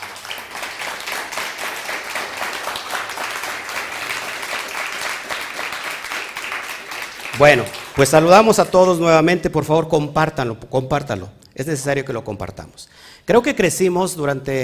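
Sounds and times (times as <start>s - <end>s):
audience applause: 0.0s - 8.3s
speech: 7.4s - 14.6s.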